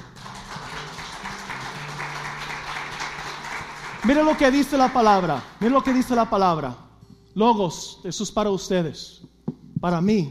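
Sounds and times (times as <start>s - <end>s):
audience applauding: 0.0s - 6.3s
speech: 4.0s - 6.8s, 7.4s - 10.3s.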